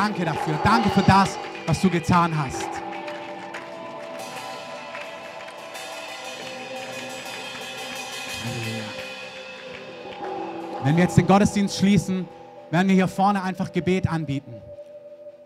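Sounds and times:
speech: 0:00.0 - 0:02.8, 0:10.8 - 0:14.7
audience applause: 0:00.0 - 0:11.3
soft sustained musical tones: 0:00.0 - 0:15.4.

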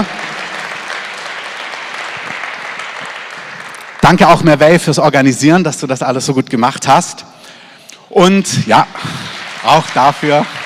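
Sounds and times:
audience applause: 0:00.0 - 0:04.5, 0:08.9 - 0:10.6
speech: 0:04.1 - 0:07.3, 0:08.2 - 0:10.6.

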